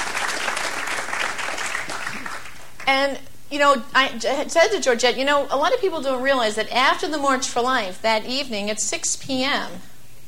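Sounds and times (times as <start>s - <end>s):
audience applause at a gathering: 0.0s - 2.8s
speech: 2.9s - 9.9s.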